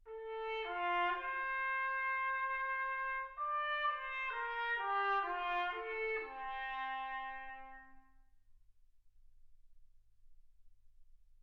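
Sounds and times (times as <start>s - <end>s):
trumpet: 0.0s - 8.2s.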